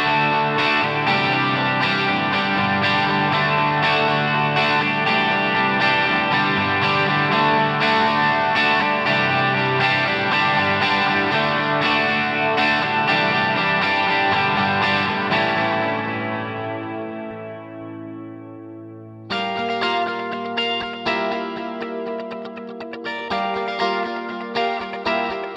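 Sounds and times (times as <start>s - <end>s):
guitar with ripple effect: 0.0s - 25.5s.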